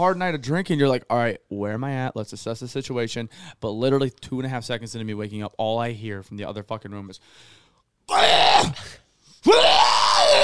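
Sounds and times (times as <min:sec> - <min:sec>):
speech: 0:00.0 - 0:09.8
voice imitating someone screaming while throwing up: 0:08.1 - 0:10.4.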